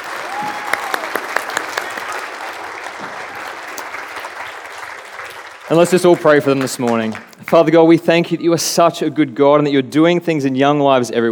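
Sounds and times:
applause: 0.0s - 7.7s
speech: 5.7s - 11.3s.

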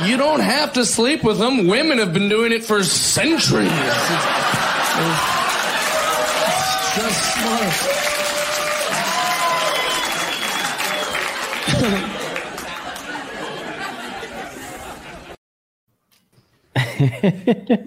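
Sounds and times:
speech: 0.0s - 5.4s, 7.0s - 8.2s, 11.8s - 12.1s, 17.0s - 17.8s
laughter: 3.4s - 5.8s, 11.6s - 15.4s, 16.8s - 17.8s
audience applause: 3.6s - 14.2s
overlapping chatter: 3.8s - 15.4s.

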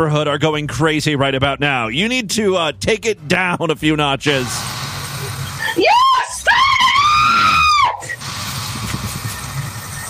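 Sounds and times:
speech: 0.0s - 4.8s
woman's extremely high-pitched scream: 5.6s - 8.2s.

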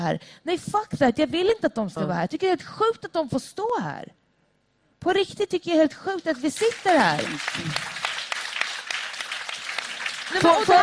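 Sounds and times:
speech: 0.0s - 4.2s, 5.0s - 8.0s, 10.3s - 10.8s
audience clapping in a tent: 6.1s - 10.8s.

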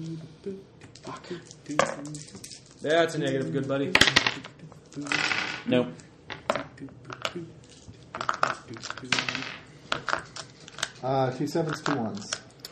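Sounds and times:
several dice clattering on a hard surface: 1.0s - 2.8s, 4.0s - 5.7s, 6.3s - 11.0s, 11.6s - 12.4s
speech: 2.8s - 4.4s, 5.0s - 6.0s, 11.1s - 12.4s.

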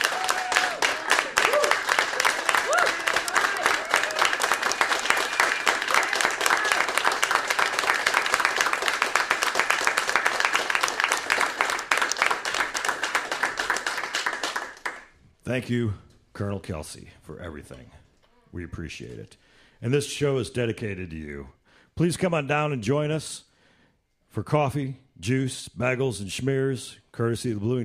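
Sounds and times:
whoops and cheers: 0.0s - 6.9s
audience applause: 0.0s - 15.1s
speech: 15.5s - 23.5s, 24.3s - 27.8s.

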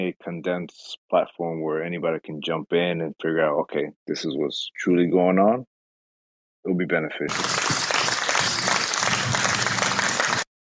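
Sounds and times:
speech: 0.0s - 5.7s, 6.6s - 7.8s
clapping: 7.3s - 10.5s.

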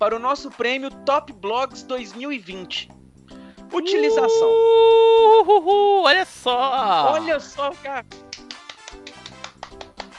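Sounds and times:
speech: 0.0s - 3.0s, 3.7s - 8.4s
hand clapping: 8.1s - 10.1s.

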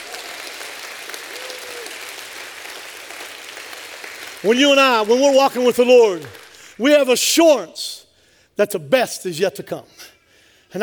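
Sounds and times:
audience clapping: 0.0s - 7.2s
speech: 4.4s - 8.0s, 8.6s - 10.1s.

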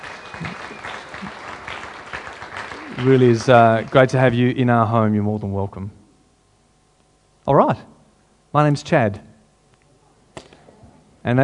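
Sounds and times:
audience applause for visitors and guests: 0.0s - 4.5s
speech: 3.0s - 6.0s, 7.5s - 7.9s, 8.5s - 9.3s, 11.2s - 11.4s.

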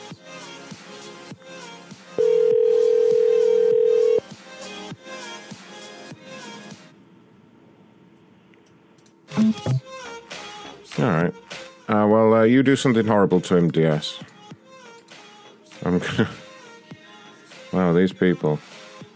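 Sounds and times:
music: 0.0s - 6.9s, 9.3s - 19.1s
short telephone dialing beeps: 2.2s - 4.2s, 9.4s - 9.8s
telephone dial tone on a phone line: 2.2s - 4.2s
speech: 12.4s - 14.3s, 16.0s - 16.4s, 17.8s - 18.7s.

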